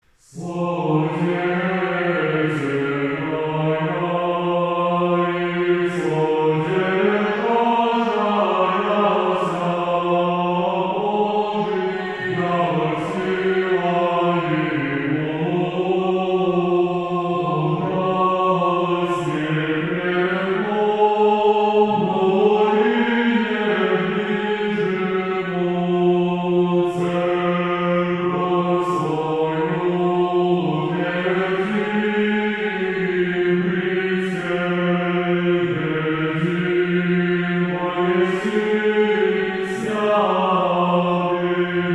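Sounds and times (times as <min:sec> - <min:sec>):
Orthodox chant in tone 1: 0:00.1 - 0:41.9.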